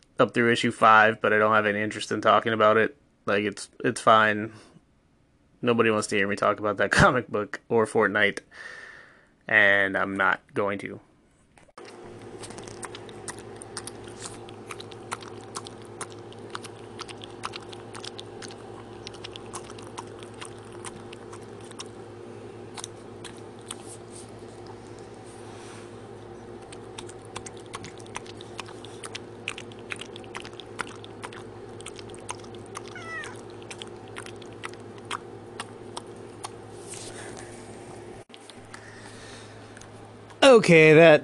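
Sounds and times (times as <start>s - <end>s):
speech: 0.2s - 4.7s, 5.6s - 8.8s, 9.5s - 11.1s, 40.7s - 41.2s
small dog chewing: 11.8s - 37.2s
constant low hum: 11.8s - 40.7s.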